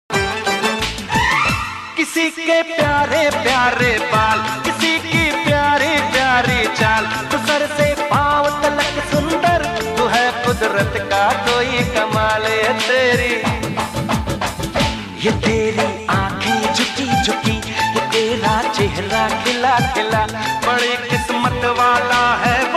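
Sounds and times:
Hindi song: 0:00.1 - 0:22.7.

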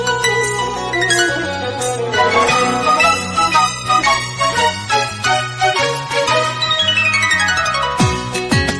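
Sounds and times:
Telugu background music ringtones: 0:00.2 - 0:08.7.

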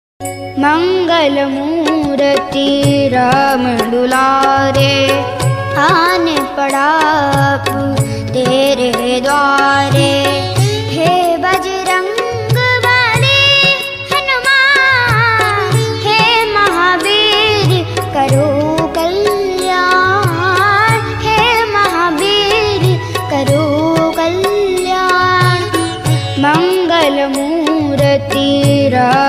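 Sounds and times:
bhajan ringtone: 0:00.2 - 0:28.1.

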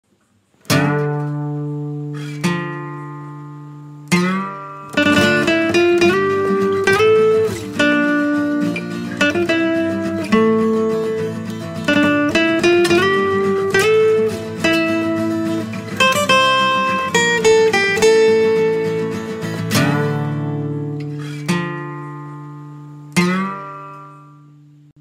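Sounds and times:
guitar cover of background music: 0:00.6 - 0:24.9.

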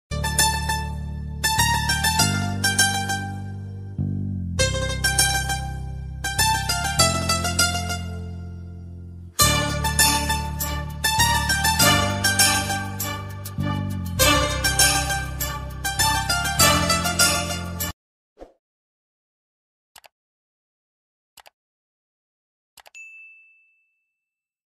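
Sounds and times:
beautiful love melody ringtone background music: 0:00.2 - 0:17.9.

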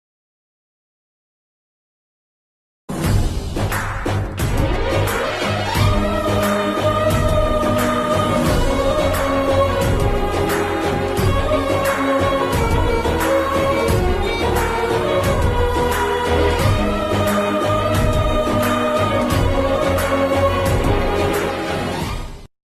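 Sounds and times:
movie background music ringtone: 0:02.9 - 0:22.5.

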